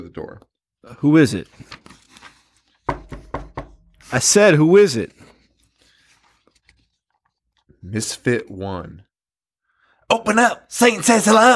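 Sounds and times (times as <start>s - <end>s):
speech: 0.0s - 1.9s, 4.1s - 5.2s, 7.8s - 9.1s, 10.1s - 11.5s
knocking on a door: 2.9s - 3.9s.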